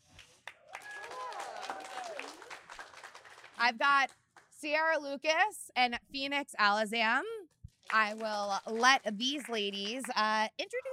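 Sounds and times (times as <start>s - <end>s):
audience applause: 0.0s - 3.6s
voices and whoops: 0.7s - 2.5s
speech: 3.6s - 7.3s, 7.9s - 10.9s.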